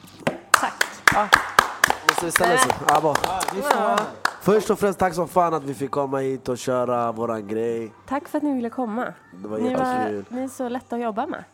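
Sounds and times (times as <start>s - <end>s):
audience clapping in a standing ovation: 0.5s - 4.8s
speech: 0.6s - 1.5s, 2.2s - 11.5s.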